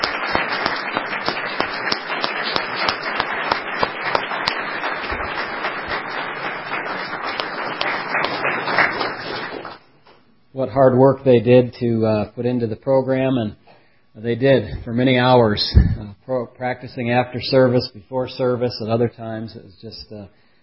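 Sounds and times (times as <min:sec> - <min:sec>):
round of applause from audience: 0:00.0 - 0:09.8
speech: 0:10.8 - 0:13.6, 0:14.2 - 0:20.4.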